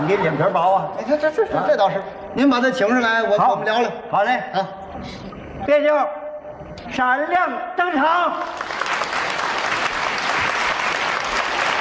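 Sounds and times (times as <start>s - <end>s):
speech: 0.0s - 6.2s, 6.8s - 8.6s
audience applause at a stage comedy performance: 8.4s - 11.7s.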